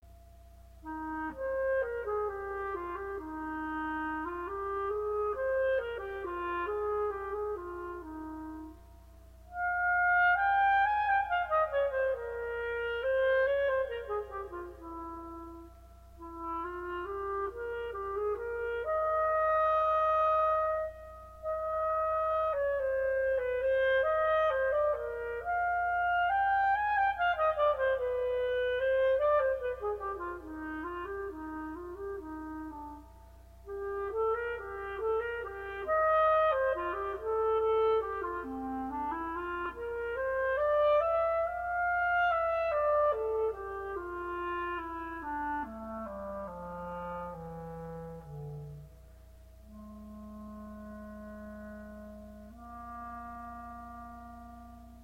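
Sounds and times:
solo clarinet: 0.1s - 55.0s.

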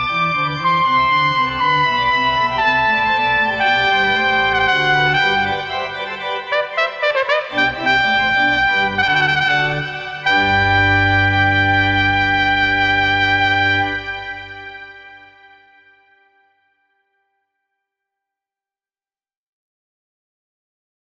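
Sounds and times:
horn playing an allegro sonata: 0.8s - 16.2s.

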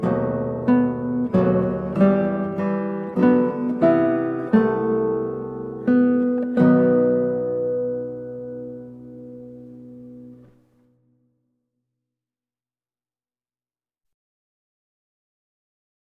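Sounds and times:
slow classical piece played on guitar: 0.0s - 11.4s.

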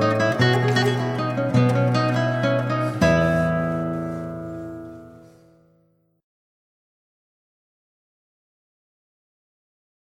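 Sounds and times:
saltarello on lute: 0.0s - 5.6s.

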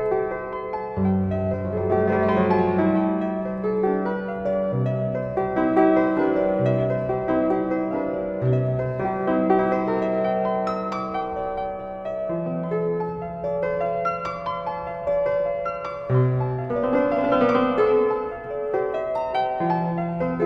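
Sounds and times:
piano prelude: 0.0s - 20.4s.

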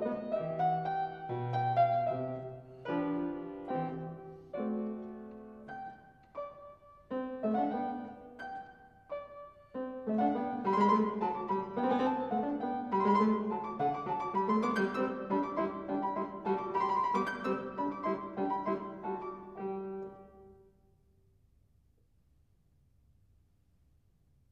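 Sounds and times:
solo fortepiano playing bagatelles: 0.0s - 20.6s.

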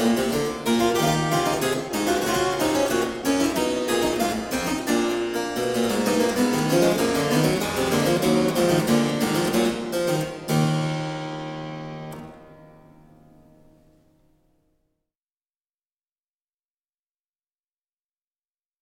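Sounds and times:
bouree music piece in E minor: 0.0s - 13.9s.

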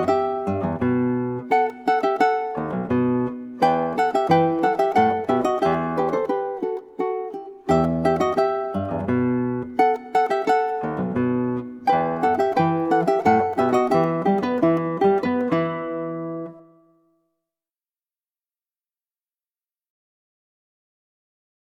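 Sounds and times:
ukulele playing a polonaise: 0.0s - 17.1s
guitar playing a polonaise: 0.0s - 17.2s.

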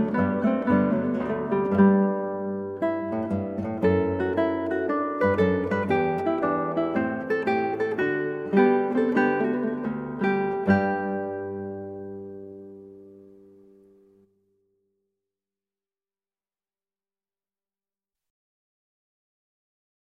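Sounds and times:
guitar piece: 0.0s - 14.9s.

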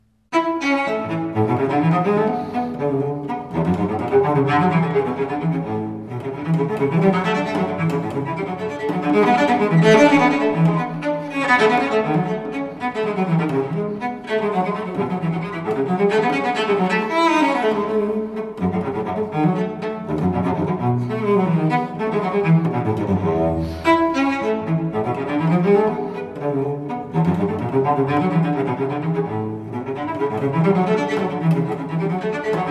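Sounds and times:
cello gigue: 0.0s - 32.6s.

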